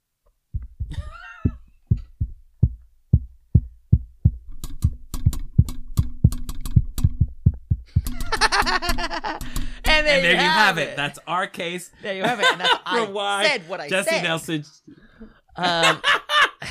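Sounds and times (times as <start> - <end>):
dull low thumps tapping out Morse code: 0.5 - 10.1
quick taps and clicks: 4.5 - 9.7
laughter: 8.1 - 11.0, 12.1 - 13.4, 15.6 - 16.7
speech: 8.9 - 14.9, 15.6 - 16.2.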